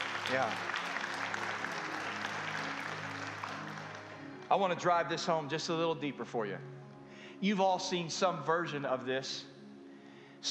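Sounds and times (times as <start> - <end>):
people clapping: 0.0 - 5.1
speech: 0.3 - 0.8, 4.5 - 6.8, 7.4 - 9.5.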